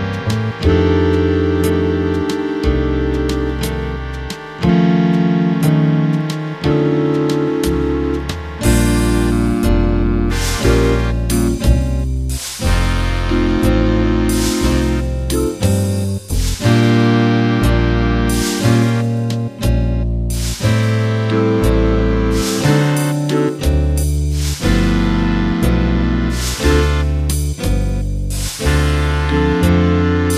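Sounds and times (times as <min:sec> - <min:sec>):
slow jazz music: 0:00.0 - 0:30.3.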